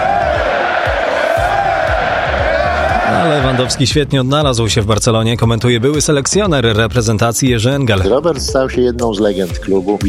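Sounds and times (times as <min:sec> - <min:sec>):
stadium crowd roaring in a sustained ovation: 0:00.0 - 0:04.0
low rhythmic thumps: 0:00.0 - 0:10.0
speech: 0:03.6 - 0:10.0.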